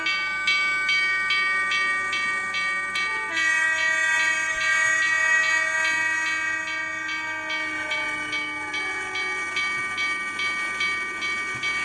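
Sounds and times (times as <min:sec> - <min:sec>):
train passing on rails: 0:00.0 - 0:11.8.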